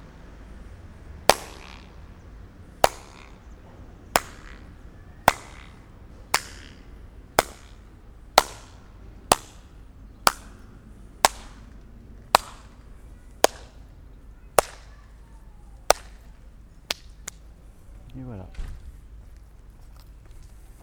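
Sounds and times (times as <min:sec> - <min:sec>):
floating echo in Barcelona: 0:00.0 - 0:16.5.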